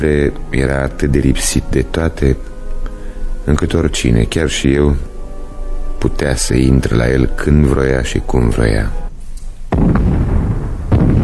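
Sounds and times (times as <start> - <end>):
speech: 0.0 - 2.5, 3.4 - 5.1, 6.0 - 9.0
cannon fire: 9.7 - 11.2.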